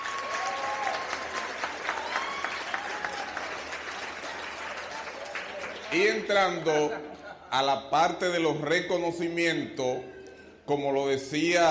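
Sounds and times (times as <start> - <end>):
audience applause: 0.0 - 6.6
speech: 5.9 - 10.1, 10.7 - 11.6.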